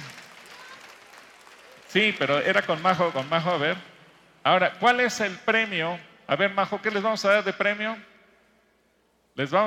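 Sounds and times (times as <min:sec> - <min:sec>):
audience applause: 0:00.0 - 0:03.7
speech: 0:01.9 - 0:08.1, 0:09.4 - 0:09.6.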